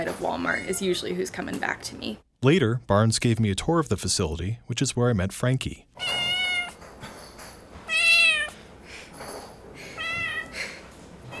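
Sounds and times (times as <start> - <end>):
speech: 0.1 - 6.2
cat meowing: 6.0 - 6.8, 7.9 - 8.6, 10.0 - 11.3.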